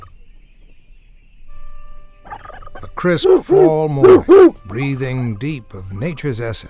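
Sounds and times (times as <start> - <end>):
soft outdoor hush: 0.0 - 6.6
wild turkey gobbling: 2.2 - 5.1
speech: 3.0 - 6.6.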